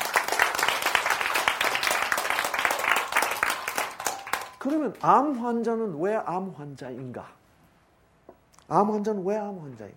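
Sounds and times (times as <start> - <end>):
audience applause: 0.0 - 5.4
speech: 4.6 - 7.4, 8.7 - 9.9.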